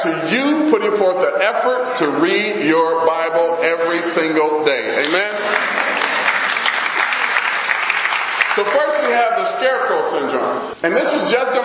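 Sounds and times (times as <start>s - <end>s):
speech: 0.0s - 6.0s, 8.6s - 11.6s
audience clapping: 5.0s - 9.4s.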